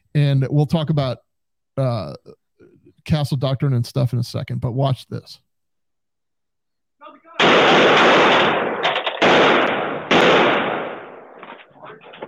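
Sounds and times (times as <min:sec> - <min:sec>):
speech: 0:00.2 - 0:02.4, 0:03.0 - 0:05.4
gunshots fired by a police officer: 0:07.4 - 0:12.2.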